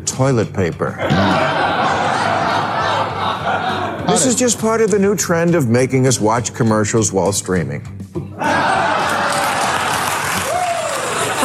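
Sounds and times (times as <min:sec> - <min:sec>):
speech: 0:00.1 - 0:02.4, 0:04.1 - 0:08.8
laughter: 0:01.0 - 0:04.6, 0:08.4 - 0:10.3
audience clapping: 0:08.6 - 0:11.4
whoops or vocal tones: 0:09.0 - 0:11.4.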